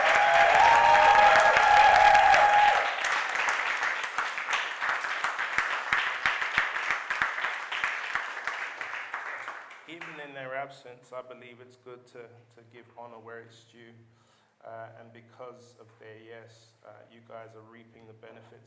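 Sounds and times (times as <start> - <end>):
audience round of applause: 0.0 - 9.8
speech: 11.6 - 18.6.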